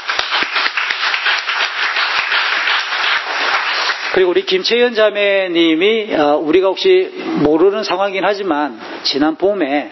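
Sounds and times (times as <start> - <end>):
audience clapping: 0.0 - 4.5
speech: 4.2 - 9.9.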